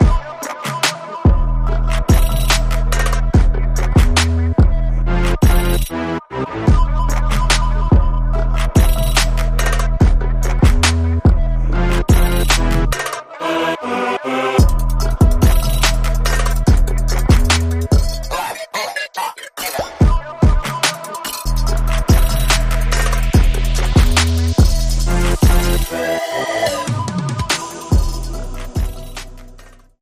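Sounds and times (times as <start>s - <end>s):
synth backing track without lead synth: 0.0s - 18.5s, 19.7s - 29.9s.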